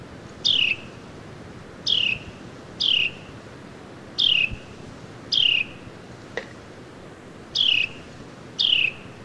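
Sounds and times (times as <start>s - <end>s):
Carolina wren song: 0.4s - 1.1s, 1.8s - 3.4s, 4.1s - 6.0s, 7.5s - 9.2s.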